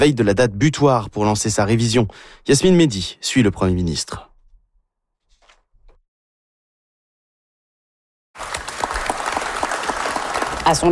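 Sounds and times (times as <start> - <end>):
speech: 0.0 - 4.3, 10.7 - 10.9
applause on arrival: 8.4 - 10.9.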